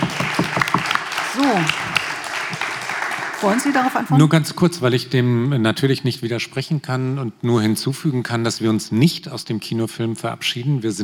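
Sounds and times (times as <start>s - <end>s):
audience applause: 0.0s - 4.3s
speech: 1.4s - 1.8s, 3.4s - 11.0s.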